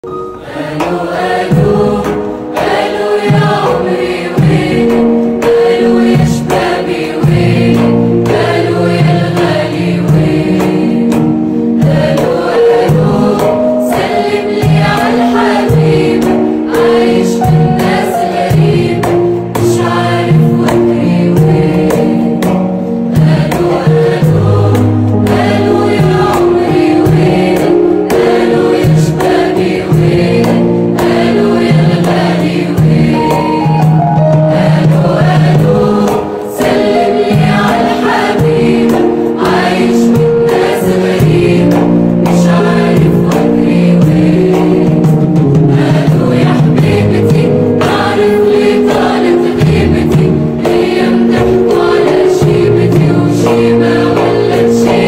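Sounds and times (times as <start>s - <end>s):
Arabic music: 0.0s - 55.0s.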